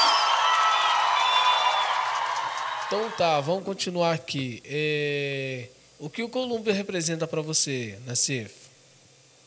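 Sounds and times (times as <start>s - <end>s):
applause: 0.0s - 3.5s
speech: 2.9s - 8.6s.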